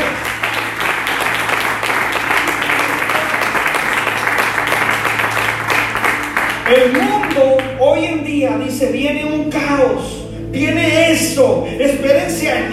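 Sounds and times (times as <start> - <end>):
audience applauding loudly: 0.0 - 7.8
speech: 8.4 - 12.7.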